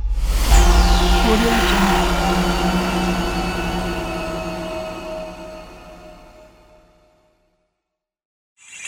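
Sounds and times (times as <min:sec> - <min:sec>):
shutdown sound: 0:00.1 - 0:07.1.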